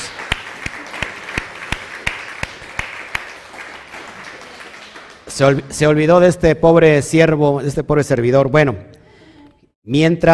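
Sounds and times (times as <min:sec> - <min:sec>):
applause: 0:00.0 - 0:06.0
speech: 0:05.4 - 0:08.9, 0:09.8 - 0:10.3.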